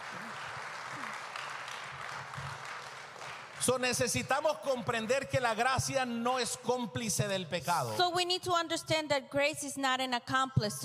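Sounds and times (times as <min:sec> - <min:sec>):
audience applause: 0:00.0 - 0:04.2
speech: 0:03.6 - 0:10.8.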